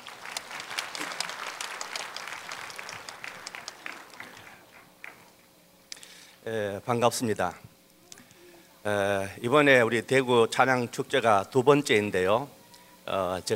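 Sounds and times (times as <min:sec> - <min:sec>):
audience applause: 0:00.0 - 0:05.3
speech: 0:06.5 - 0:07.7, 0:08.8 - 0:13.5.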